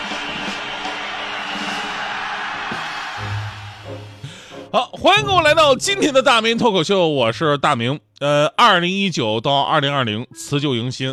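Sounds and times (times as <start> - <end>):
crowd applauding: 0.0 - 4.4
speech: 4.7 - 11.1.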